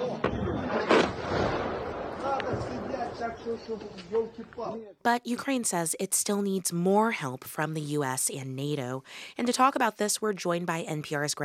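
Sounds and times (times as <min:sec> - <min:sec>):
Ukrainian air defenses firing on an incoming missile strike: 0:00.3 - 0:04.4
speech: 0:03.4 - 0:11.4.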